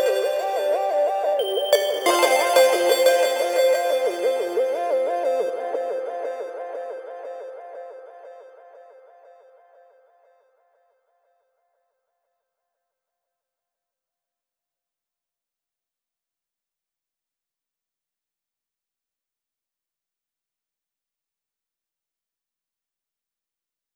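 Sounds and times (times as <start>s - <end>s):
synthesizers: 0.0s - 10.8s.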